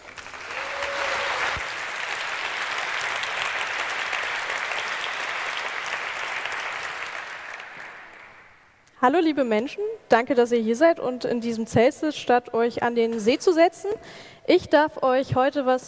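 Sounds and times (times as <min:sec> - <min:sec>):
audience applause: 0:00.0 - 0:08.7
speech: 0:09.0 - 0:15.8.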